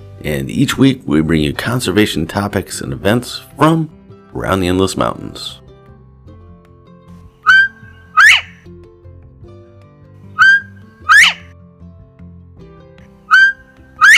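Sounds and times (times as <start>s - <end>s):
soft music: 0.0s - 14.1s
speech: 0.2s - 5.6s
northern bobwhite two-part whistle call: 7.4s - 8.7s, 10.4s - 11.5s, 13.3s - 14.1s.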